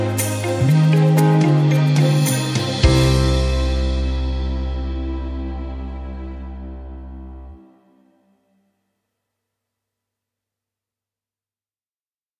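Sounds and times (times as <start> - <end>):
pop emo music: 0.0 - 7.7.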